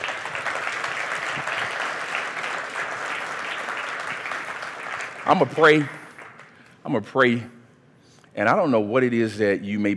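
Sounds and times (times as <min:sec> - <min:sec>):
audience clapping hands: 0:00.0 - 0:06.8
speech: 0:05.3 - 0:06.0, 0:06.8 - 0:07.6, 0:08.4 - 0:09.9.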